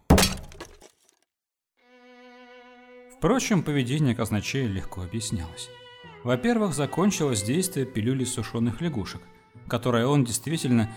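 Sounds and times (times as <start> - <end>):
stool smashed over someone's head: 0.0 - 1.0
speech: 3.2 - 10.9.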